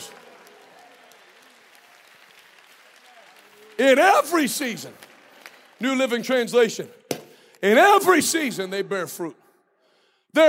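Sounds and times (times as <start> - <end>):
audience clapping hands: 0.0 - 7.5
speech: 3.8 - 5.1, 5.8 - 7.0, 7.6 - 9.4.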